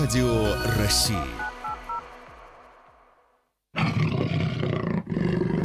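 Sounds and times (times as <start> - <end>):
speech: 0.1 - 1.4
Amur leopard roaring: 3.7 - 5.6.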